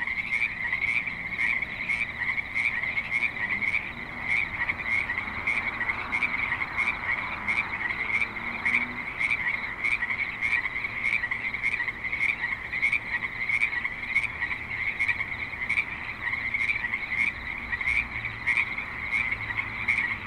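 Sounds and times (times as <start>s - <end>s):
frog chorus croaking: 0.0s - 20.2s.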